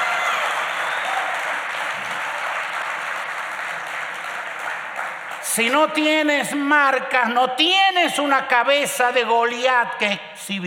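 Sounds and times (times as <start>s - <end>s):
audience applause: 0.0s - 6.0s
speech: 5.6s - 10.6s.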